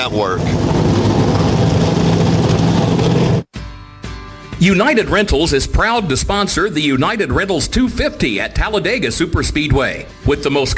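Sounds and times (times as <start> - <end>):
speech: 0.0 - 0.9, 4.6 - 10.7
Xfinity Series stock car engines starting up on pit road at Talladega: 0.0 - 3.5.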